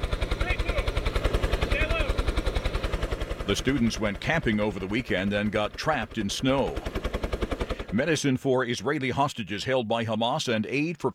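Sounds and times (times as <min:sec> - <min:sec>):
police rescue helicopter flying overhead: 0:00.0 - 0:08.1
speech: 0:03.5 - 0:07.0, 0:07.9 - 0:11.1.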